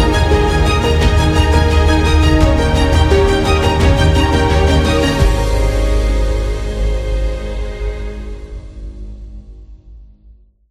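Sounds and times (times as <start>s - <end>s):
inspiring piano music: 0.0s - 8.6s.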